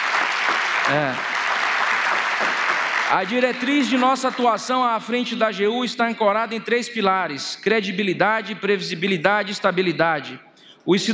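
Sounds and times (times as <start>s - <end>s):
audience applause: 0.0s - 4.9s
speech: 0.9s - 1.3s, 3.1s - 11.1s.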